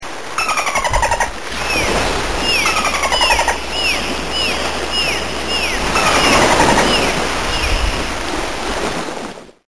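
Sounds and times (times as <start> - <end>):
dolphin: 0.4 - 8.3.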